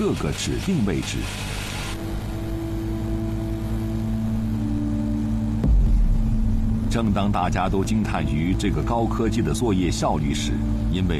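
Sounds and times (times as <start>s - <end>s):
speech: 0.0s - 1.6s, 7.0s - 11.1s
drone propellers whirring: 1.4s - 8.2s.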